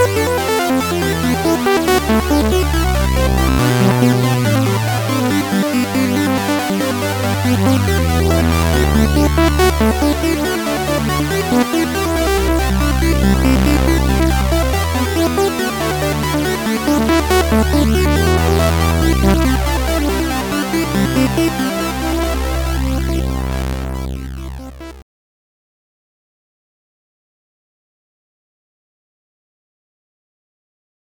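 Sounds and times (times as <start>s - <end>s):
arpeggiated piano: 0.0s - 24.6s.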